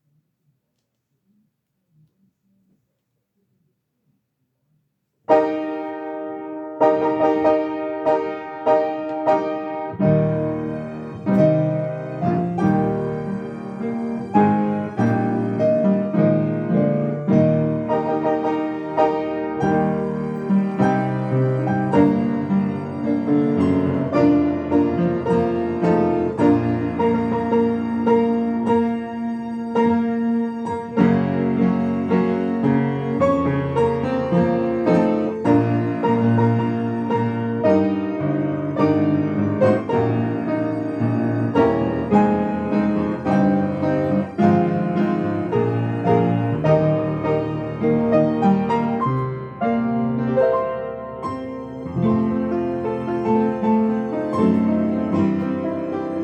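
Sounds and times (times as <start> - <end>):
patriotic hymn for piano and orchestra: 5.3 - 56.2.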